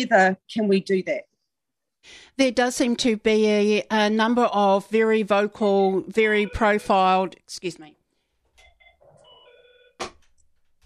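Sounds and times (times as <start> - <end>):
speech: 0.0 - 1.3, 2.0 - 8.0
telephone ringing: 6.2 - 7.2, 8.6 - 10.0.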